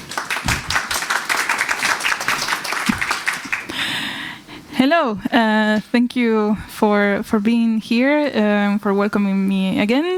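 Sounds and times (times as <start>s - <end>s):
audience applause welcoming a speaker: 0.0s - 3.7s
speech: 4.8s - 10.1s.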